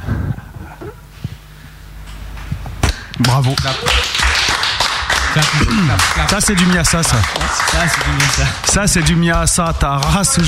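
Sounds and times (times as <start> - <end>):
person clapping: 2.9 - 10.4
speech: 3.2 - 4.1, 5.3 - 10.4.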